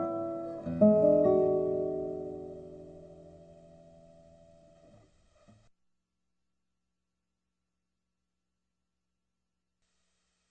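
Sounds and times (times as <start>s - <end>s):
guitar boogie: 0.0s - 3.8s.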